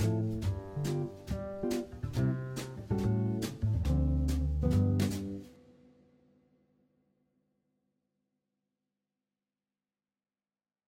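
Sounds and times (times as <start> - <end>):
major swing bop music: 0.0 - 5.7.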